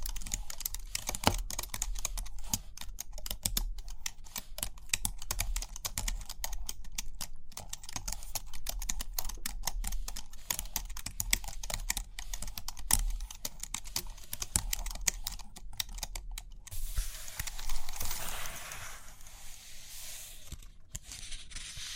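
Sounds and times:
rapid tapping and light clicking: 0.0 - 16.7
soft rustling: 16.7 - 21.9.

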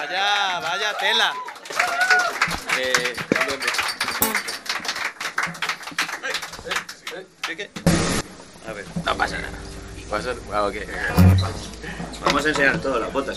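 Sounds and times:
speech: 0.0 - 1.5, 2.8 - 4.4, 7.2 - 13.3
audience applause at a live concert: 0.0 - 7.7.

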